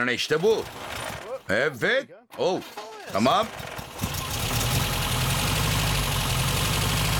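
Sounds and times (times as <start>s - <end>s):
speech: 0.0s - 0.9s, 1.5s - 4.2s
four-cylinder car engine misfiring on three cylinders: 0.3s - 1.5s, 3.1s - 7.1s.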